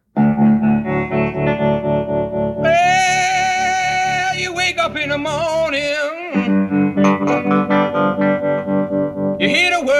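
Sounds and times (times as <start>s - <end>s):
classic rock song playing: 0.1s - 9.9s.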